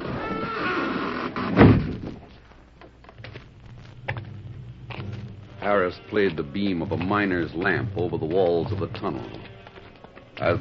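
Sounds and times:
cleverly concealed door sliding shut: 0.0s - 2.3s
speech: 5.7s - 9.5s, 10.4s - 10.5s.

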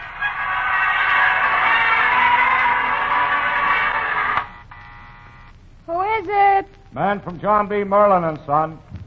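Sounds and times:
New Year's Eve crowd in Times Square: 0.0s - 4.4s
speech: 7.0s - 8.9s.

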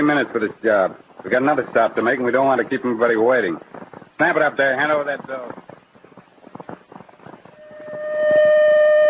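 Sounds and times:
speech: 0.0s - 5.7s
choppy pulsing noise: 0.0s - 9.0s
citywide alarm siren wailing: 7.6s - 9.0s.

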